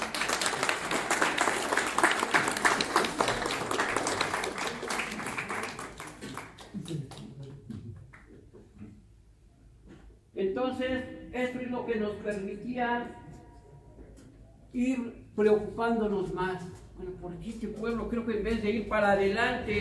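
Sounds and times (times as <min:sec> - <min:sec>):
audience applause: 0:00.0 - 0:07.6
speech: 0:11.7 - 0:13.2, 0:14.8 - 0:19.7.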